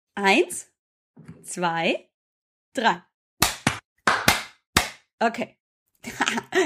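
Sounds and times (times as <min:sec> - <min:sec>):
speech: 0:00.2 - 0:02.1, 0:02.8 - 0:03.1, 0:05.2 - 0:06.6
hand clap: 0:03.4 - 0:05.0
laughter: 0:06.0 - 0:06.6.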